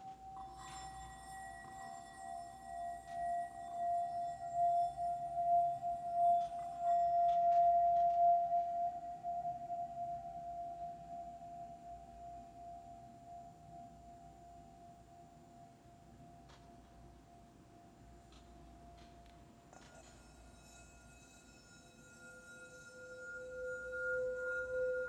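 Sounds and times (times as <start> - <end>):
healing bowls ringing: 0.0 - 12.6, 19.8 - 25.0.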